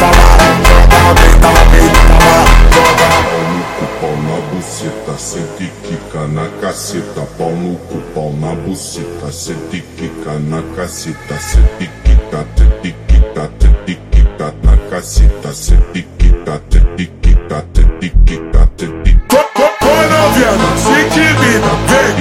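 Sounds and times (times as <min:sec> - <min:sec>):
slowed funk music: 0:00.0 - 0:03.7, 0:11.5 - 0:22.1.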